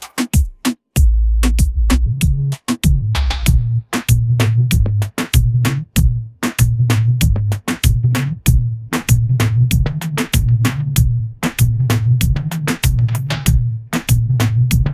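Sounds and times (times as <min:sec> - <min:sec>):
tropical dembow groove ringtone: 0:01.0 - 0:14.9.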